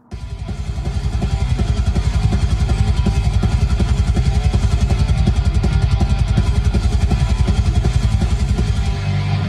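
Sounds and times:
thrash metal music: 0.0 - 9.4.

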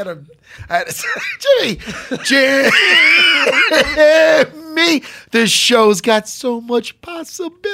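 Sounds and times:
speech: 0.0 - 7.7
laughter: 0.8 - 4.6
person having a coughing fit: 2.0 - 4.5.

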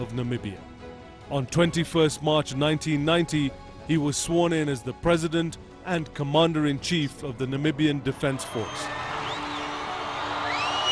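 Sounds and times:
speech: 0.0 - 0.7, 1.3 - 9.0
crowd cheering joyously: 8.2 - 10.9.

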